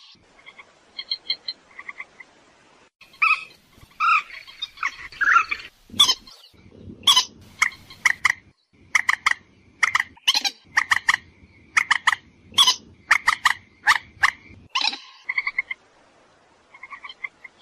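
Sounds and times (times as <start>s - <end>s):
purple swamphen screeching and clucking: 3.1s - 15.7s.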